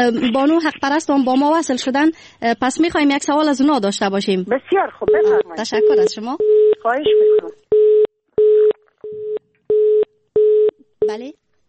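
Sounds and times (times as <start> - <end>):
speech: 0.0 - 7.8, 11.1 - 11.4
telephone line beeps after a dropped call: 5.1 - 11.2.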